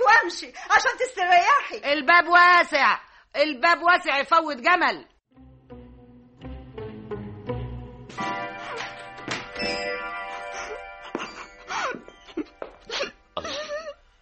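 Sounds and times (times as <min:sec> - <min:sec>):
speech: 0:00.2 - 0:05.1
woman crying: 0:10.3 - 0:14.0.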